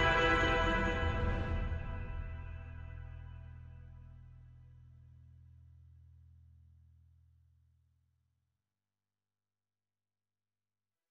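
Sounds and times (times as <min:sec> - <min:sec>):
cinematic action tension music: 0:00.0 - 0:04.7.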